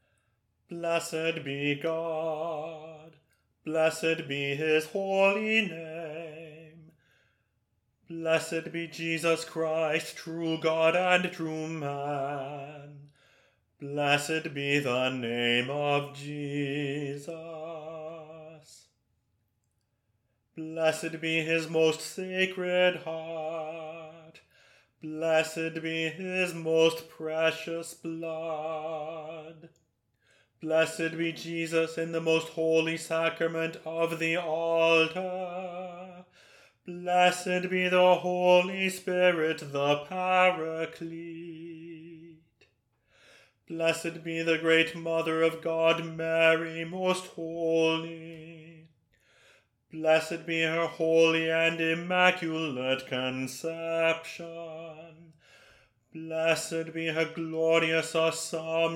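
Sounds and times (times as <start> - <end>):
bass voice singing a prayer: 0.7 - 6.9, 8.1 - 13.1, 13.8 - 18.9, 20.6 - 24.4, 25.0 - 29.7, 30.6 - 36.2, 36.9 - 42.5, 43.7 - 48.8, 49.9 - 55.3, 56.1 - 58.9.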